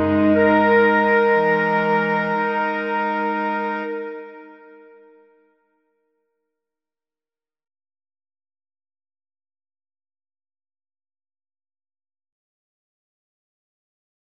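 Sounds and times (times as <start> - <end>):
bass clarinets playing algorithmic composition: 0.0 - 5.2.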